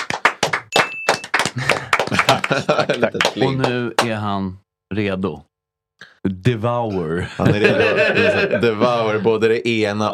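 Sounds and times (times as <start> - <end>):
applause: 0.0 - 4.1
laughter: 1.6 - 3.7, 7.1 - 9.6
speech: 1.6 - 10.1.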